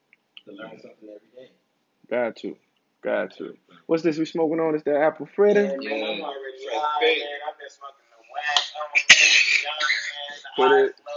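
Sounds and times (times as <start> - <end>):
speech: 0.5 - 11.1
person coughing: 9.0 - 9.7.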